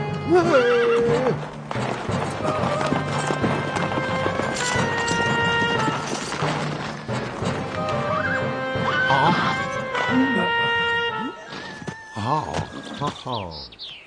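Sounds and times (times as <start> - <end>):
hooves clip-clopping: 0.1 - 13.4
governor's horse whinny: 0.3 - 1.5, 8.1 - 13.3.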